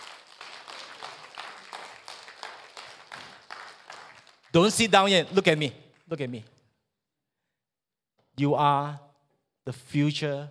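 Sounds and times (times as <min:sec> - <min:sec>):
crowd applauding: 0:00.0 - 0:06.1
speech: 0:04.6 - 0:06.5, 0:08.4 - 0:09.0, 0:09.6 - 0:10.4.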